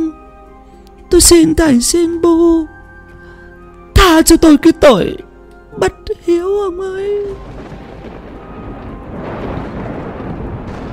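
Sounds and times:
speech: 1.2 - 2.8, 4.2 - 7.5
thunder rolling through a storm: 7.3 - 10.9.

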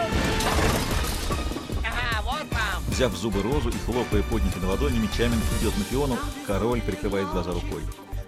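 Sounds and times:
flaming catapult projectile crashing into giant metre-wide burning button: 0.1 - 2.4
debris rattling and clattering: 0.1 - 2.9
speech: 3.0 - 8.1.

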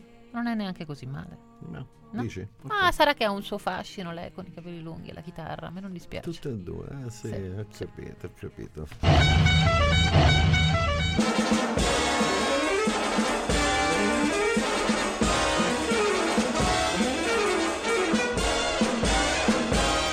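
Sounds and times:
speech: 0.4 - 12.0
musical car horn, the most famous horn in film history: 9.0 - 20.1.

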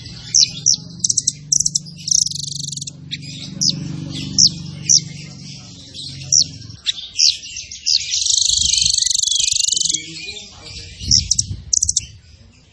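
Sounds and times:
zebra finch song with buzzy bursts and trills: 0.0 - 12.7.

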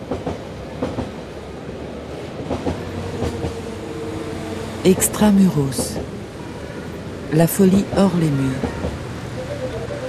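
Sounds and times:
Trans-Europe Express wheels clacking over the rails: 0.0 - 1.3, 2.1 - 6.2, 7.6 - 10.0
Trans-Europe Express train passing through Bondy: 0.0 - 10.0
speech: 4.8 - 6.2, 7.3 - 8.8.

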